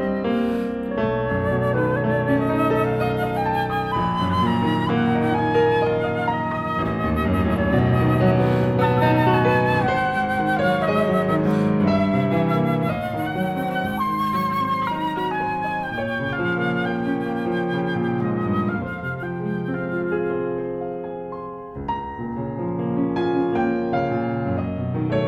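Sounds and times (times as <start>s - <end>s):
flute: 0.0s - 21.6s
piano: 0.0s - 25.2s.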